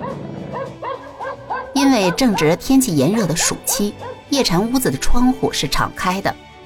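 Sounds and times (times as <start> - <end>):
dogs barking: 0.0 - 4.7
speech: 1.8 - 6.5.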